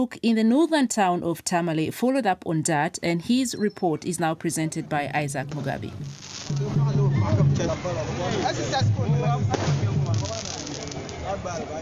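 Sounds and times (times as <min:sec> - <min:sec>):
speech: 0:00.0 - 0:10.0, 0:11.3 - 0:11.8
firecrackers being lit off in northern Ghana: 0:06.1 - 0:06.6, 0:09.5 - 0:11.4.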